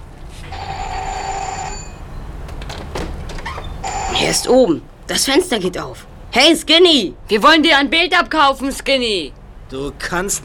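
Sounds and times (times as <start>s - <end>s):
doorbell ringing: 0.5s - 2.3s, 3.8s - 4.6s
speech: 4.3s - 10.4s.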